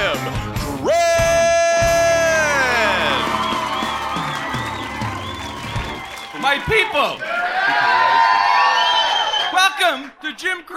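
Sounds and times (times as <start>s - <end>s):
audience cheering: 0.9s - 9.8s
audience applause welcoming a show host: 1.0s - 8.4s
speech: 6.9s - 7.8s, 9.9s - 10.7s.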